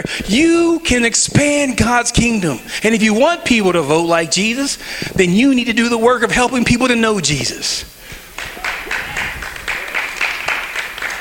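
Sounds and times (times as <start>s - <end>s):
speech: 0.0s - 8.0s
audience applause: 8.3s - 11.2s.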